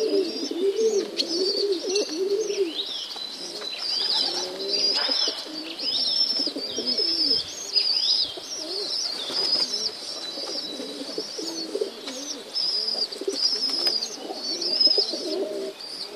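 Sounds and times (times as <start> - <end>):
pigeons in a dovecote: 0.0 - 16.1.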